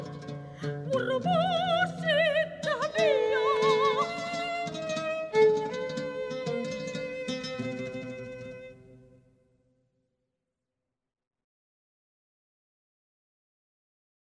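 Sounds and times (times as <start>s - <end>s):
soprano singing: 0.0s - 9.1s
oriental violin: 0.0s - 9.4s
oud: 0.0s - 9.5s.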